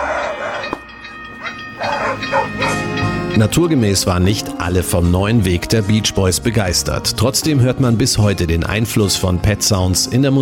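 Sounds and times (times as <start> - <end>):
dogs barking: 0.0 - 0.8, 1.4 - 3.0
speech: 3.4 - 10.4.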